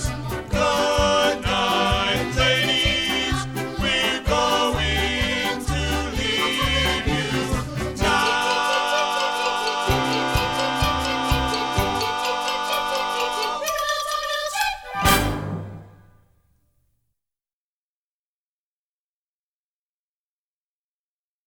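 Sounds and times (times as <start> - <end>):
vocals: 0.0 - 15.5.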